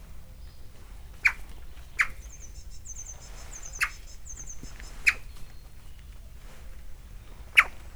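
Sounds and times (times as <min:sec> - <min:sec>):
Eurasian magpie giving harsh rasping chatter: 0:01.1 - 0:02.7, 0:03.6 - 0:05.3, 0:07.5 - 0:07.7.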